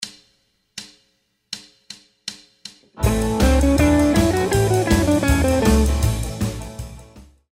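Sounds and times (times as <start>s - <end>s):
instrument solo: 3.0s - 6.3s.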